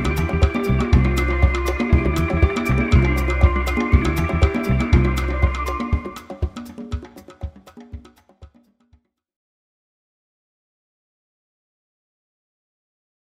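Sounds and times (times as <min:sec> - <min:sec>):
dance groove: 0:00.0 - 0:08.4.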